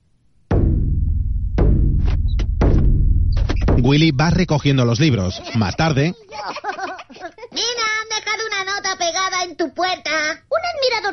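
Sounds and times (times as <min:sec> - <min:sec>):
ominous drum being played: 0:00.5 - 0:04.8
speech: 0:03.9 - 0:06.9, 0:09.0 - 0:11.1
laughter: 0:05.2 - 0:07.6.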